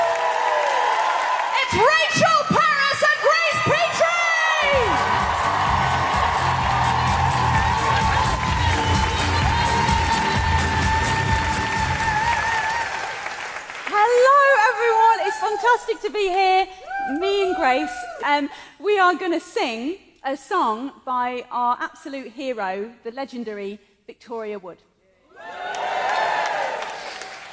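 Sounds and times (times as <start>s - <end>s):
audience applause at a live show in Edinburgh: 0.0s - 2.1s, 3.7s - 15.6s, 25.4s - 27.5s
audience whoops and shouts at a live show in Edinburgh: 0.0s - 13.2s, 16.8s - 18.3s
speech: 1.7s - 2.4s, 15.8s - 25.8s.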